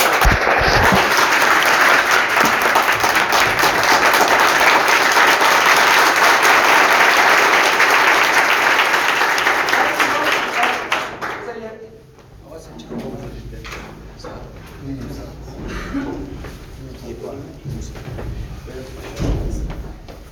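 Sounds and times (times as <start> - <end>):
audience applause at a group meeting in a central office in Mashhad: 0.0 - 11.4.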